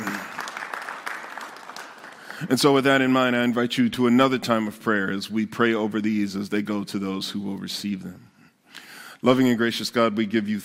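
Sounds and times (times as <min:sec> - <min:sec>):
audience applause: 0:00.0 - 0:02.8
speech: 0:02.4 - 0:08.3, 0:09.2 - 0:10.6.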